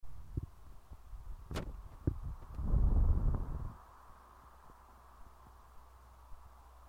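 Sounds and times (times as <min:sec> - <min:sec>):
fan: 0:00.0 - 0:06.8.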